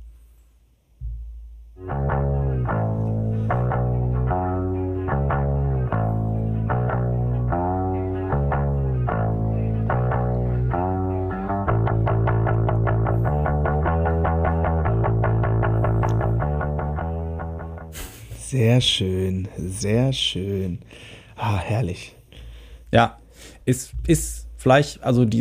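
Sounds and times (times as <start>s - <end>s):
chorus-drenched guitar chords: 1.0s - 18.9s
fretless bass gliding between low notes: 1.0s - 20.7s
speech: 18.6s - 22.2s, 22.9s - 25.3s.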